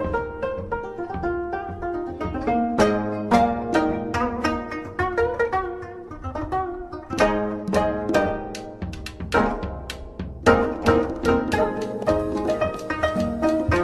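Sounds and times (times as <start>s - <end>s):
music: 0.0s - 13.8s.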